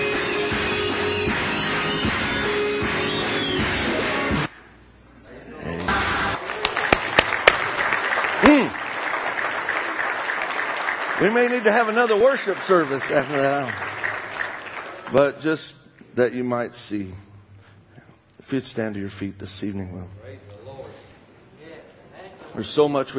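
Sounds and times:
audience clapping: 0.0s - 4.6s, 5.7s - 15.2s
person shouting: 8.4s - 8.8s
speech: 11.2s - 14.1s, 15.1s - 17.3s, 18.5s - 20.5s, 22.5s - 23.1s.

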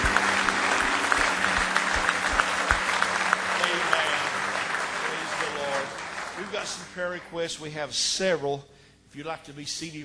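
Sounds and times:
audience applauding: 0.0s - 7.6s
speech: 7.0s - 10.0s.

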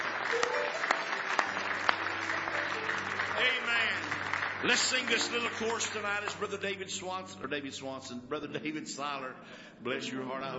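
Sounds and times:
hand clapping applause: 0.0s - 6.8s
speech: 2.8s - 10.5s.

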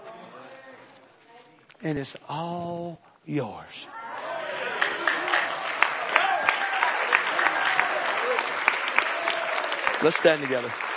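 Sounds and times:
speech: 1.8s - 4.0s, 10.0s - 10.9s
audience applauding: 4.2s - 10.9s.

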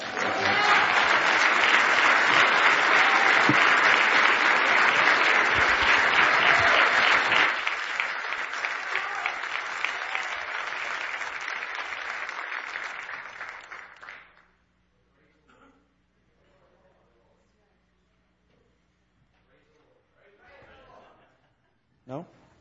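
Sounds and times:
church congregation applauding a guest preacher: 0.0s - 14.6s.

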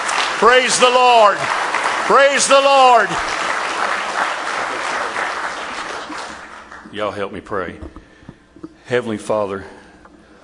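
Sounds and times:
audience applause: 0.0s - 6.9s
speech: 0.4s - 3.5s, 6.9s - 8.0s, 8.9s - 9.8s.

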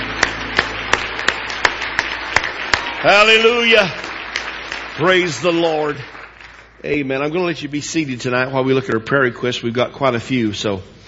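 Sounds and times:
audience hand clapping: 0.0s - 7.5s
speech: 3.0s - 4.0s, 5.0s - 6.1s, 6.8s - 11.0s.

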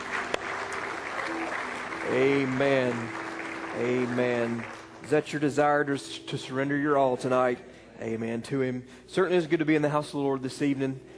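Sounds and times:
church congregation clapping in praise during an evening service: 0.0s - 5.9s
speech: 2.1s - 3.2s, 3.8s - 11.1s.

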